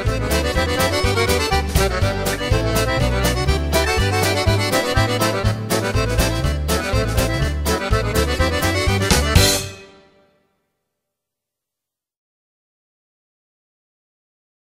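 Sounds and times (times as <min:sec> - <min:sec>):
accordion polka: 0:00.0 - 0:10.2.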